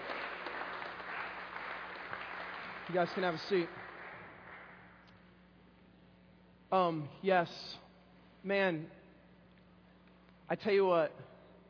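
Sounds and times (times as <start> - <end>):
audience clapping: 0.0 - 5.1
speech: 2.9 - 3.8, 6.7 - 7.8, 8.4 - 9.0, 10.5 - 11.3.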